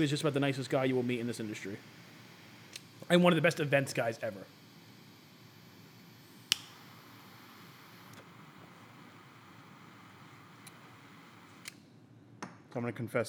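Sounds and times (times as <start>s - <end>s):
speech: 0.0s - 2.1s, 3.1s - 4.6s, 12.8s - 13.2s
cigar clipped with a cigar cutter: 6.4s - 6.9s.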